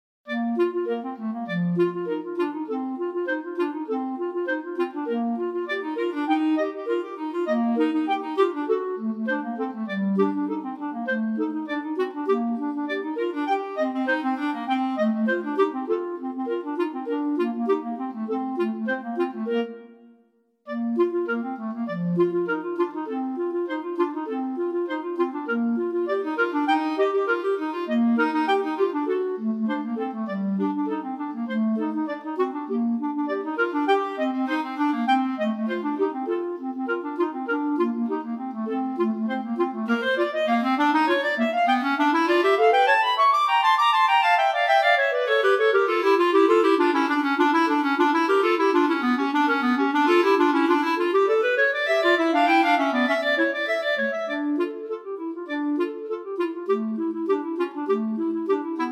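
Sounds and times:
clarinet duet: 0.3s - 58.9s.

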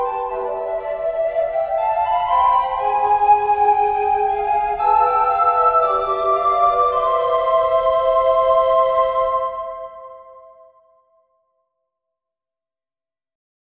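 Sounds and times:
recorder trio: 0.0s - 10.2s.

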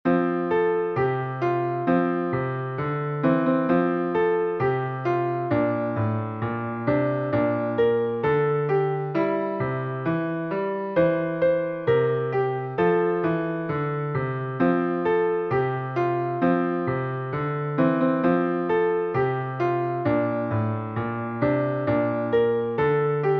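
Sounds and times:
Christmas song: 0.1s - 23.3s.

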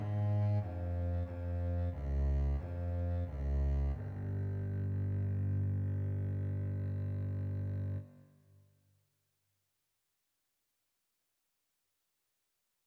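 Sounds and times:
contrabass suite allegretto: 0.0s - 8.2s.

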